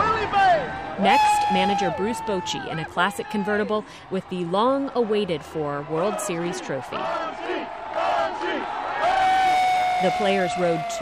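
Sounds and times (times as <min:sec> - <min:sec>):
crowd cheering and chanting at a World Series victory parade: 0:00.0 - 0:11.0
speech: 0:01.0 - 0:07.6, 0:10.0 - 0:11.0.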